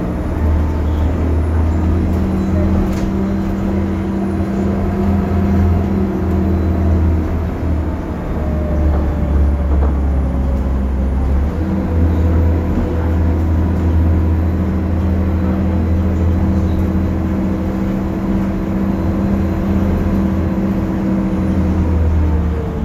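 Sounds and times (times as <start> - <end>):
BredaMenarinibus Avancity+ CNG bus engine droning in Istanbul: 0.0 - 22.8.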